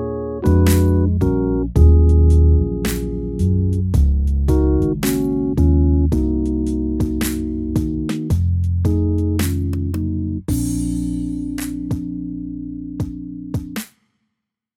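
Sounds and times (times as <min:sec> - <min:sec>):
hip hop music: 0:00.6 - 0:12.4.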